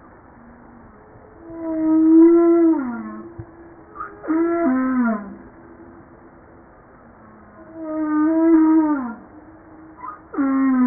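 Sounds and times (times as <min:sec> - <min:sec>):
humpback whale descending harmonic moans: 0:01.4 - 0:05.5, 0:07.5 - 0:10.8.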